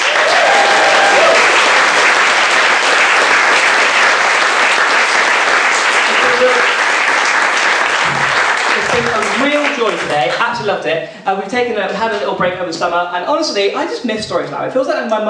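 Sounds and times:
audience applause: 0:00.0 - 0:10.5
speech: 0:10.0 - 0:15.2.

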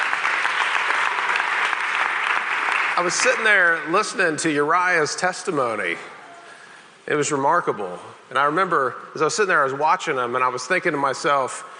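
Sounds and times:
audience applause: 0:00.0 - 0:03.8
speech: 0:03.0 - 0:06.2, 0:07.1 - 0:11.7.

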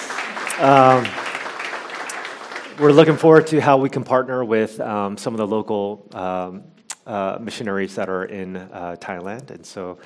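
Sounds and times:
audience applause: 0:00.0 - 0:03.6
speech: 0:00.6 - 0:01.2, 0:02.8 - 0:10.0.

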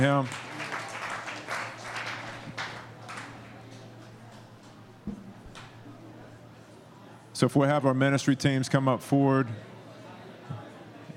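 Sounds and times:
speech: 0:00.0 - 0:00.5, 0:07.4 - 0:09.7
audience applause: 0:00.0 - 0:04.8.

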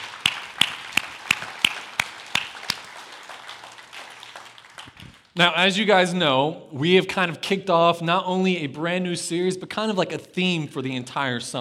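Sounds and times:
audience applause: 0:00.0 - 0:05.4
speech: 0:05.4 - 0:11.6.

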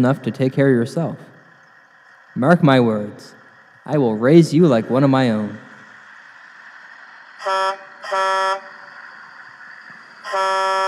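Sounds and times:
speech: 0:00.0 - 0:01.3, 0:02.4 - 0:05.7, 0:07.4 - 0:08.2
semi-trailer truck air horn honking: 0:07.4 - 0:08.8, 0:10.2 - 0:10.8.

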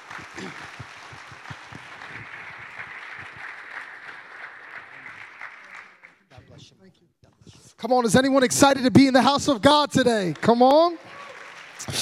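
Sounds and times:
church congregation at Generations Church applauding a guest speaker: 0:00.0 - 0:06.4, 0:09.6 - 0:12.0
speech: 0:07.8 - 0:11.0.

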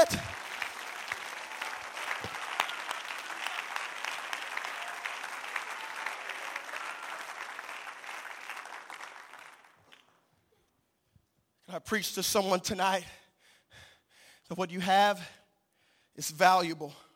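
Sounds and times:
audience clapping hands: 0:00.0 - 0:10.3
speech: 0:11.8 - 0:13.2, 0:14.5 - 0:15.4, 0:16.2 - 0:17.0.

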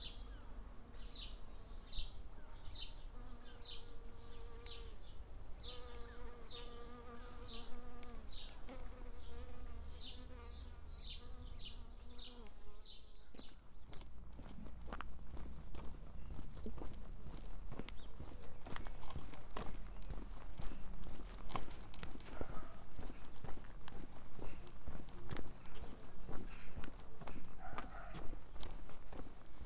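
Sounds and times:
insect buzzing: 0:00.0 - 0:12.6
birds chirping: 0:00.0 - 0:14.0
crunching footsteps on the East Devon Way: 0:13.3 - 0:29.6.

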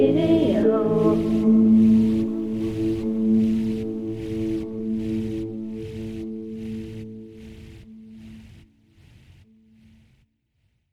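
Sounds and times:
lullaby music: 0:00.0 - 0:08.3.

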